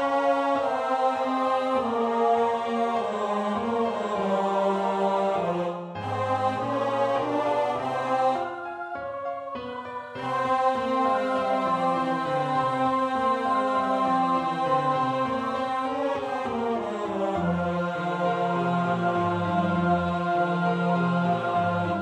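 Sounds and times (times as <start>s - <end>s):
tenor voice singing amen slowly: 0.0s - 8.9s, 9.5s - 22.0s.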